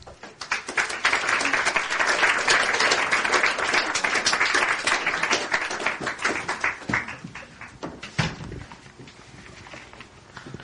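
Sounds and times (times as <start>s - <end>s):
audience applause greeting performers at a poetry reading: 0.0s - 8.1s.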